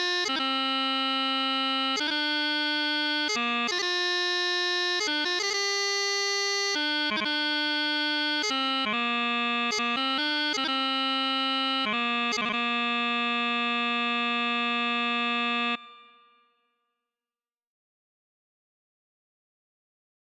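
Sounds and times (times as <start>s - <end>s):
bagpipe chanter: 0.0s - 16.1s.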